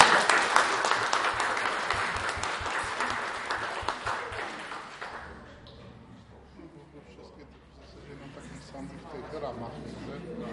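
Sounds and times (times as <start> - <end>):
audience applause: 0.0 - 5.6.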